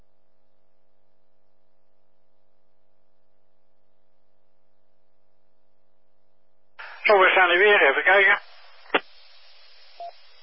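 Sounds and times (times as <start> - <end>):
beep on the radio channel: 6.8 - 10.4
speech: 7.4 - 8.4.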